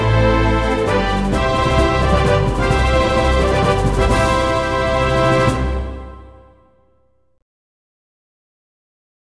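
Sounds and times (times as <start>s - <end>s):
victory jingle: 0.0s - 6.6s.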